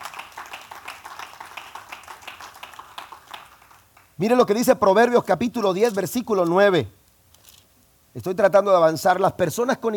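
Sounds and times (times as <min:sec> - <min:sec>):
audience clapping: 0:00.0 - 0:04.2
speech: 0:04.2 - 0:07.0, 0:08.2 - 0:09.9.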